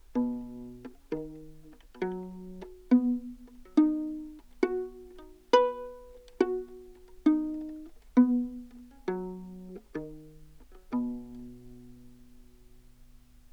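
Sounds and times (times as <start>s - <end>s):
baroque viola pizzicato arpeggio in an anechoic room: 0.0s - 13.3s.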